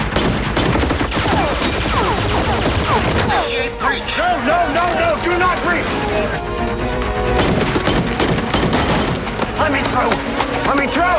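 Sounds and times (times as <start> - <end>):
gunfire in an armed standoff: 0.0 - 6.2, 7.3 - 10.9
speech: 9.6 - 11.1.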